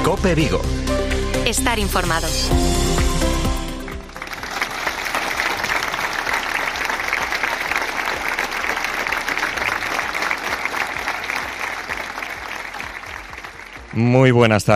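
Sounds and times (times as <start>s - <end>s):
speech: 0.2s - 2.8s, 13.9s - 14.7s
applause of the townspeople of Porriño: 3.3s - 14.4s.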